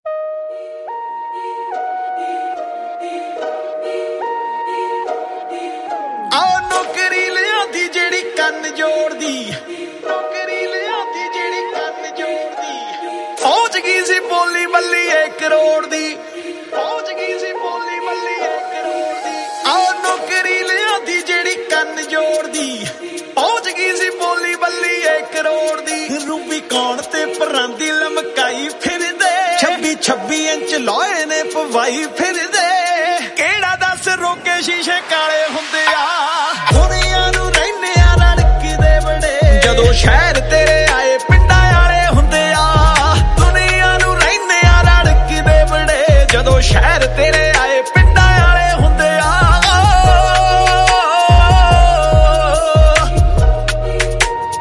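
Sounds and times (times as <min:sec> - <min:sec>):
music: 0:00.1 - 0:54.5.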